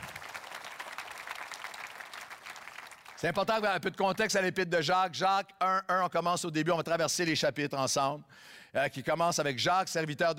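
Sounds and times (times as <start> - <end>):
congregation applauding at a French-language church service: 0.0 - 3.7
speech: 3.2 - 10.3.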